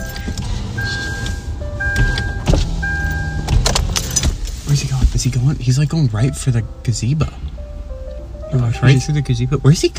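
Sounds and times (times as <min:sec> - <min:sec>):
car electric window motor whining: 0:00.0 - 0:04.5
low vehicle rumble: 0:00.0 - 0:09.9
speech: 0:04.8 - 0:07.5, 0:08.5 - 0:09.9.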